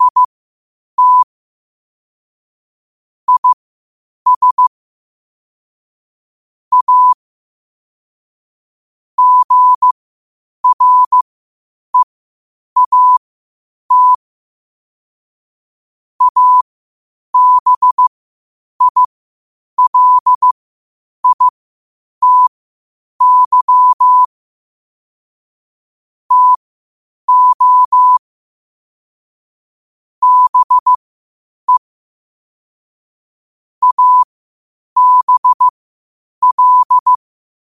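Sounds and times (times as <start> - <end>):
morse code at 5 wpm: 0.0 - 0.3, 1.0 - 1.3, 3.3 - 3.6, 4.3 - 4.7, 6.7 - 7.2, 9.2 - 9.9, 10.6 - 11.2, 12.8 - 13.2, 13.9 - 14.2, 16.2 - 16.6, 17.4 - 18.1, 18.8 - 19.1, 19.8 - 20.6, 21.2 - 21.5, 22.2 - 22.5, 23.2 - 24.3, 26.3 - 26.6, 27.3 - 28.2, 30.2 - 31.0, 33.8 - 34.3, 35.0 - 35.7, 36.4 - 37.2.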